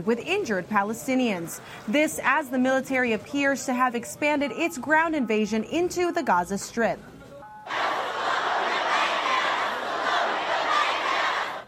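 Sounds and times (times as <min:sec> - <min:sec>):
speech: 0:00.0 - 0:07.1
large crowd cheering and shouting: 0:07.7 - 0:11.6.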